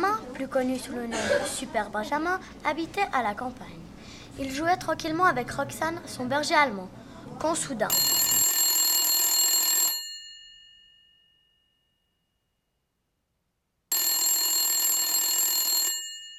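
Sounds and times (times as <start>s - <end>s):
speech: 0.4s - 8.0s
telephone ringing: 7.9s - 11.2s, 13.9s - 16.3s.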